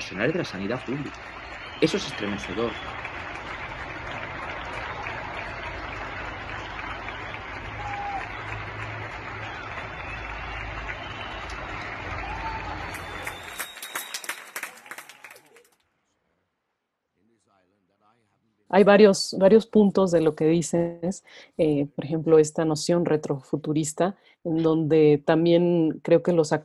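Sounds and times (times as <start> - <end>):
people clapping and cheering from balconies: 0.0 - 15.9
speech: 0.1 - 3.2, 18.7 - 26.6.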